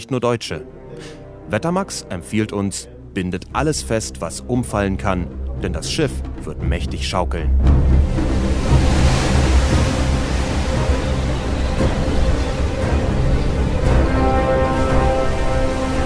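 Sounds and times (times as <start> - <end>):
speech: 0.0 - 8.2
stormy sea waves: 7.5 - 16.0.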